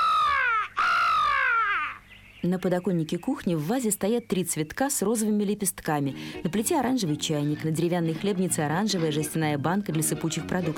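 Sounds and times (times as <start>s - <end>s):
crow cawing: 0.0s - 2.1s
speech: 2.4s - 10.7s.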